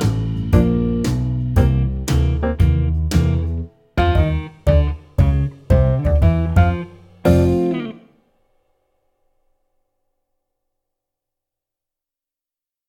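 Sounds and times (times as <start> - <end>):
jazz backing track: 0.0 - 8.1.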